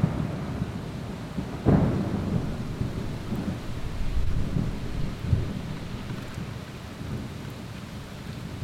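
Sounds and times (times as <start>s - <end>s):
thunderstorm: 0.0s - 7.5s
piano: 1.7s - 6.6s.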